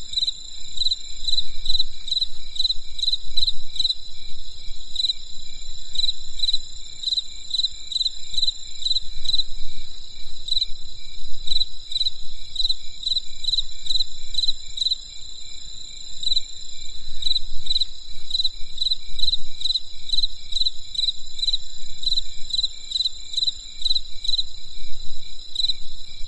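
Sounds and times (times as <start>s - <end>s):
insect chirping: 0.0s - 26.2s.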